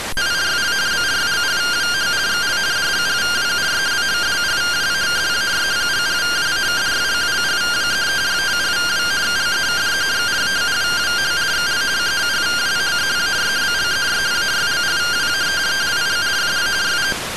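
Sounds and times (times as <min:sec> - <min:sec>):
received RTTY radioteletype signal: 0:00.1 - 0:17.2.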